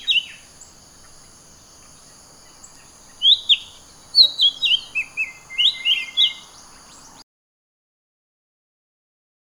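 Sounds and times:
bird chirping song: 0.0s - 7.2s.

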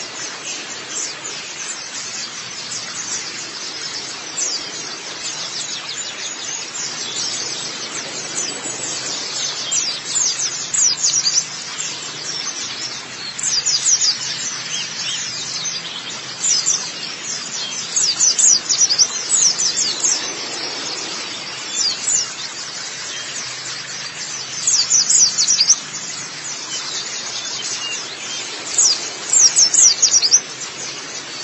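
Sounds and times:
steady background twitter: 0.0s - 31.4s
white-eye song of high chirps: 0.0s - 31.4s.

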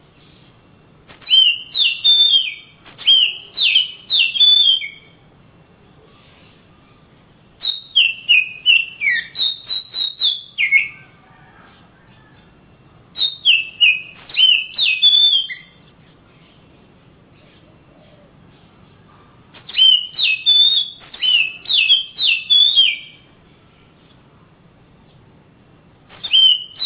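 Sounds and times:
Oriental magpie-robin song: 1.2s - 5.2s, 7.6s - 12.4s, 13.1s - 16.7s, 19.6s - 23.3s, 26.1s - 26.8s.

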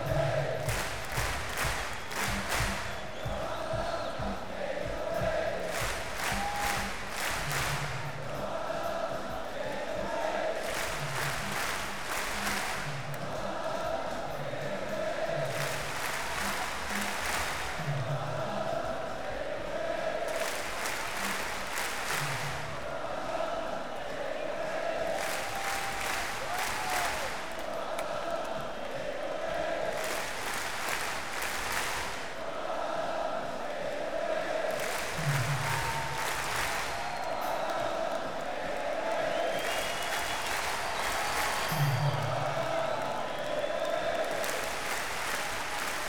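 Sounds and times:
chanting: 0.0s - 46.0s.

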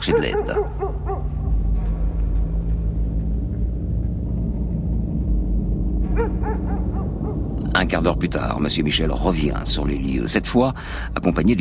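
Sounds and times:
speech: 0.0s - 1.0s, 7.8s - 11.5s
dog barking in a forest: 0.0s - 1.4s, 6.2s - 7.4s
steady low rumble: 0.0s - 11.5s.

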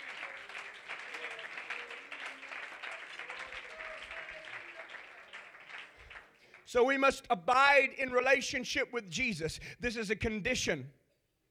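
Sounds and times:
congregation clapping hands at a church service: 0.0s - 7.4s
speech: 6.7s - 11.0s.

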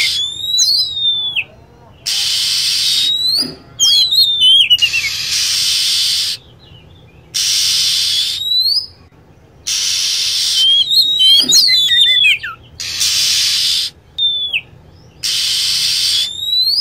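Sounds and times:
lovebird chirping: 0.0s - 16.8s
harsh hissing noise: 2.1s - 3.8s, 5.0s - 6.4s, 7.4s - 8.4s, 9.7s - 10.7s, 12.8s - 14.0s.

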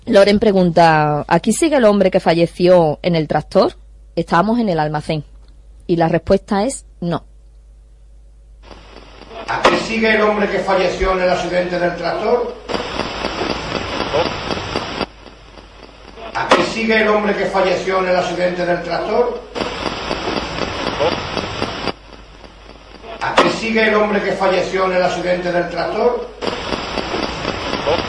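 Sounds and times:
speech: 0.1s - 5.3s, 5.9s - 7.3s, 9.4s - 13.2s, 14.1s - 14.5s, 16.4s - 19.8s, 23.2s - 27.2s, 27.9s - 28.0s
Spirit Box radio scanning static: 8.6s - 28.0s.

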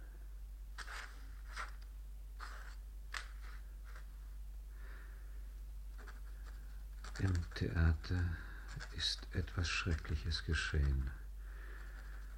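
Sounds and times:
pen or pencil scratching on paper drawing a lily: 0.8s - 1.8s, 2.4s - 4.0s, 6.0s - 11.1s
speech: 7.2s - 11.2s.

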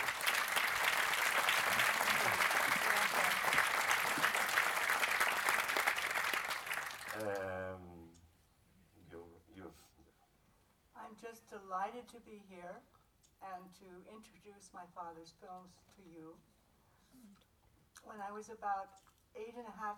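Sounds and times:
audience applause at the introduction of a film screening: 0.0s - 7.5s
speech: 11.5s - 16.5s, 18.0s - 19.9s.

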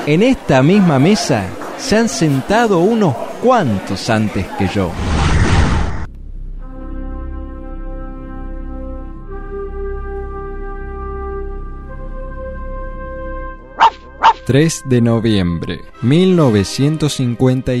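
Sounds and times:
speech: 0.0s - 5.2s, 14.5s - 17.7s
dog barking: 13.8s - 14.4s.

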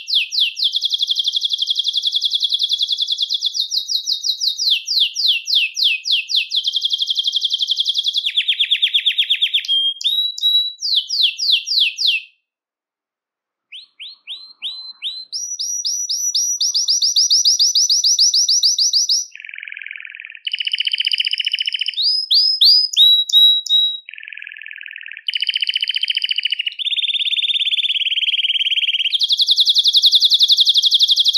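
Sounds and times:
Belgian canary singing: 0.0s - 12.4s, 13.6s - 31.3s.

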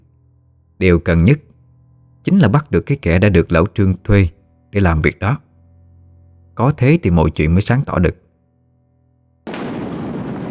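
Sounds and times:
speech: 0.8s - 1.5s, 2.2s - 5.4s, 6.6s - 8.2s
thunderclap during a storm: 9.5s - 10.5s
strong wind: 9.6s - 10.5s.

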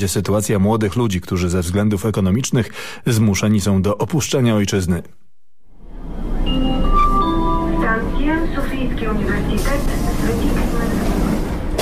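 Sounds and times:
speech: 0.0s - 5.2s, 8.9s - 10.9s
metro train rumbling through Sofia University underground metro station in Bulgaria: 5.9s - 11.8s.

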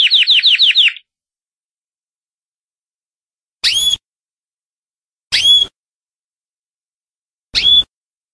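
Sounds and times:
canary singing sustained rolling trills: 0.0s - 1.1s, 3.6s - 4.0s, 5.3s - 5.7s, 7.6s - 7.9s.

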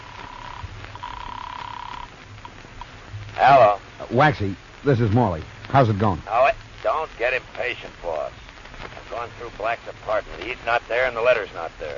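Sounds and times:
telephone ringing with warbling tone: 0.0s - 2.1s
low rumble: 0.0s - 11.9s
speech: 3.4s - 8.4s, 9.1s - 11.9s.

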